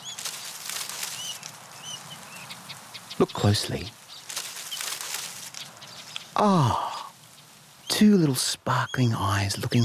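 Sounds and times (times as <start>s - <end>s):
long-nosed bandicoot rustling through dry leaves: 0.0s - 6.4s, 7.2s - 7.9s
speech: 3.2s - 4.0s, 6.4s - 6.9s, 8.0s - 9.8s.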